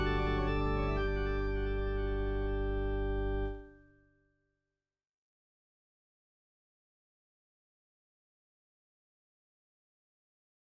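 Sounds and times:
major chords round the cycle of fifths in Bach temperament: 0.0 - 3.7.

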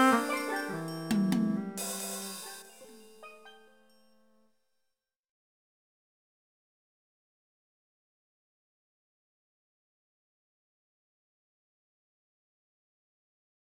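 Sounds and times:
cello tune with two to one beat ratios: 0.0 - 2.5.

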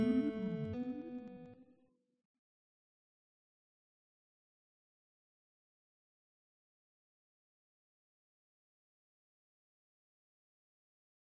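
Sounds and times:
recorder playing melodic minor melody: 0.0 - 1.5
guitar in melodic minor: 0.0 - 1.7.

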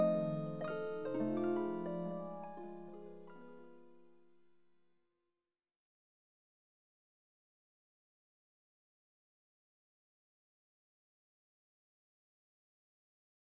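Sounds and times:
twelve bar blues chords: 0.0 - 3.7.

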